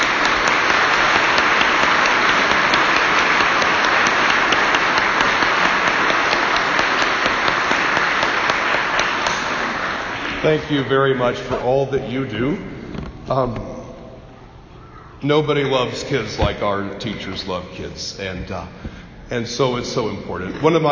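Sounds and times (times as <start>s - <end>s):
audience applauding: 0.0s - 11.3s
speech: 10.4s - 13.8s, 15.2s - 20.9s.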